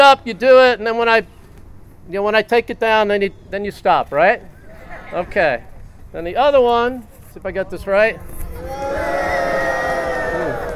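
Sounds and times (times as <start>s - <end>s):
speech: 0.1s - 1.4s, 2.1s - 4.5s, 5.1s - 9.2s
New Jersey audience booing on cue: 8.6s - 10.7s.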